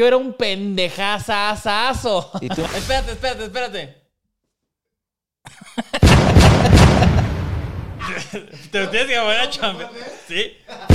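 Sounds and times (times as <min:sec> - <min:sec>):
speech: 0:00.0 - 0:04.0, 0:08.1 - 0:10.9
laughter: 0:02.2 - 0:03.1, 0:05.5 - 0:07.4, 0:08.0 - 0:10.9
gunshot sound effect: 0:06.0 - 0:08.0.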